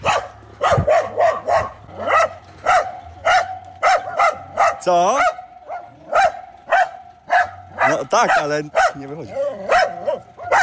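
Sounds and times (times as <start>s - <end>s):
dog barking loudly: 0.0s - 10.6s
speech: 4.8s - 5.3s, 7.9s - 9.8s.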